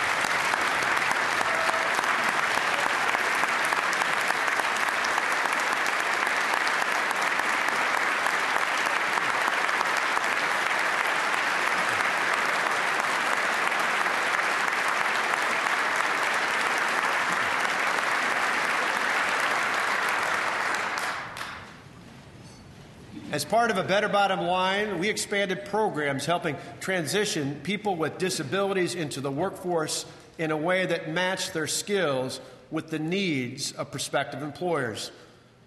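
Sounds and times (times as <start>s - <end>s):
dense applause from a large audience: 0.0s - 21.7s
speech: 23.4s - 35.2s.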